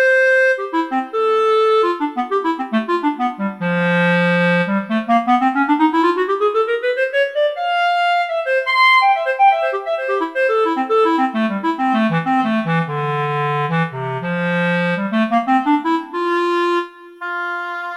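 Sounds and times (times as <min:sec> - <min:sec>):
woodwinds: 0:00.0 - 0:17.9.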